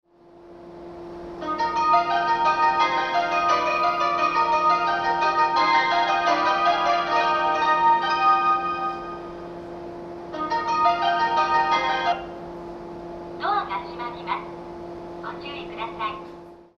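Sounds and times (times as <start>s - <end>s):
melody: 1.4s - 9.6s, 10.3s - 12.4s.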